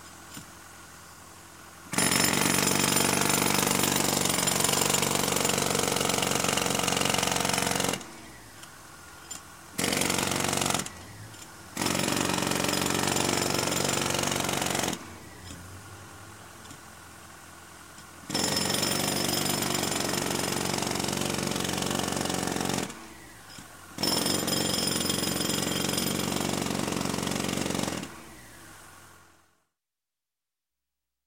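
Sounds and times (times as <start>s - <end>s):
jackhammer hammering at construction: 1.9s - 8.1s, 9.8s - 10.9s, 11.8s - 15.0s, 18.3s - 23.0s, 24.0s - 28.1s.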